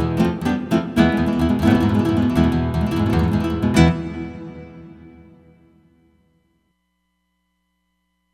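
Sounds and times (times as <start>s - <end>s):
flamenco guitar on Roland Fantom XR: 0.0s - 6.1s.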